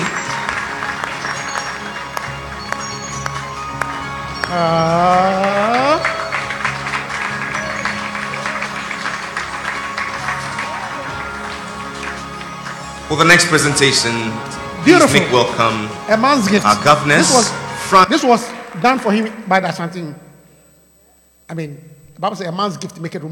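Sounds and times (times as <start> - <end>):
audience at an awards event applauding: 0.0 - 17.5
speech: 4.5 - 5.3, 13.1 - 20.2, 21.5 - 23.2.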